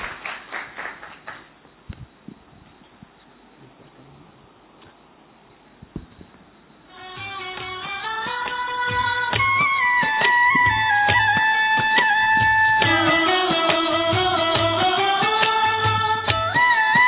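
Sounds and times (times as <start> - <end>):
audience applause: 0.0 - 1.5
steady music: 6.9 - 17.0.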